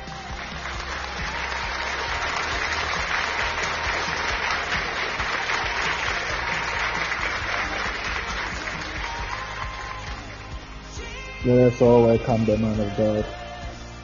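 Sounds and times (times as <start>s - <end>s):
crowd applause: 0.2s - 10.6s
speech: 11.5s - 13.4s.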